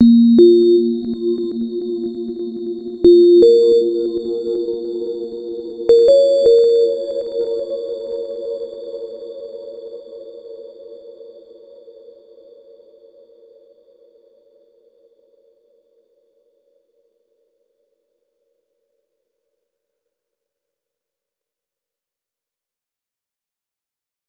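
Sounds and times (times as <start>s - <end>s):
tone: 0.0s - 8.7s.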